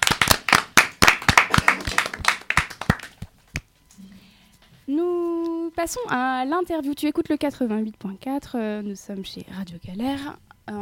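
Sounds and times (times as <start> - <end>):
group clapping hands: 0.0 - 3.7
speech: 5.8 - 10.8.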